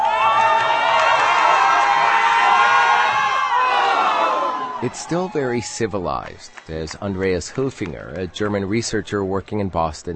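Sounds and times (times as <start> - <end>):
whoops: 0.0 - 5.6
German football fans cheering and shouting at a viewing party: 0.0 - 6.3
speech: 4.8 - 10.1.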